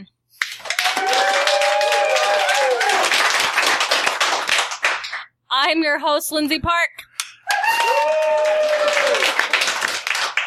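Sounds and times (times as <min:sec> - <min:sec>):
crowd applause: 0:00.4 - 0:05.3, 0:07.5 - 0:10.4
speech: 0:05.6 - 0:07.0.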